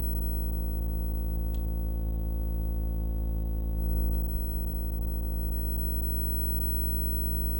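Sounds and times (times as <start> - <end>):
hum: 0.0 - 7.5.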